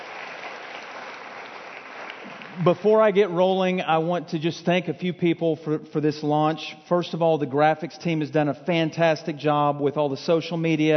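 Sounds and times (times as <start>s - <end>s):
crowd applauding: 0.0s - 3.3s
speech: 2.6s - 10.9s.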